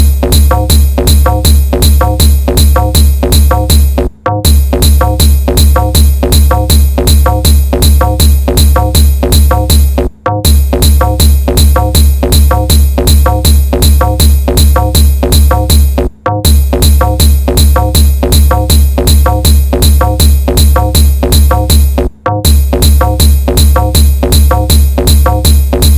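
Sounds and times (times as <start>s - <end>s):
DJ trance music beats with bass and vibration: 0.0s - 21.9s, 22.5s - 25.9s.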